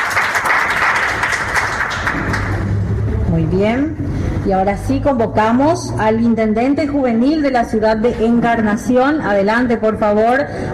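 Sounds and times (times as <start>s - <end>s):
audience applause: 0.0s - 2.7s
speech: 3.4s - 10.7s.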